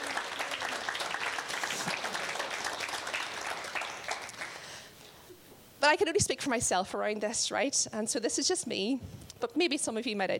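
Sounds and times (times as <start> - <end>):
audience applause: 0.0 - 4.9
speech: 5.8 - 10.3.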